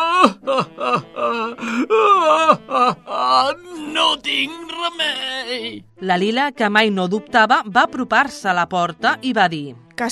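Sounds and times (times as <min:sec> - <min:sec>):
old man weeping with loud wailing sobs: 0:00.0 - 0:05.8
speech: 0:00.2 - 0:02.6, 0:04.2 - 0:10.1.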